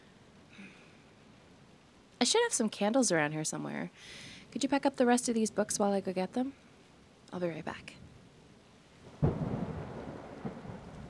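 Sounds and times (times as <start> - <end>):
steady rain: 0.0 - 11.0
speech: 2.2 - 6.7, 7.3 - 8.0
loud thunderclap in a heavy thunderstorm: 9.0 - 11.0.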